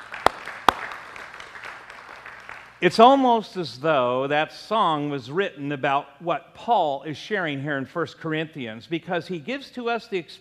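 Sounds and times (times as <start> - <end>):
hand claps during a church service: 0.0 - 2.8
speech: 2.8 - 10.3.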